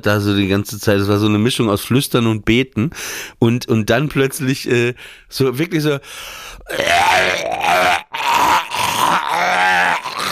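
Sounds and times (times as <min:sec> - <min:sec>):
speech: 0:00.0 - 0:10.2
voice imitating retching and gagging: 0:06.6 - 0:10.2.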